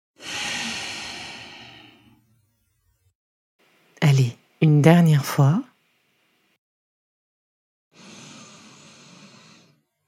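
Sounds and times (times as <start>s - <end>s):
long exhale through the nose during an energizing breathing exercise: 0.2s - 2.2s, 7.9s - 9.8s
speech: 4.2s - 5.7s.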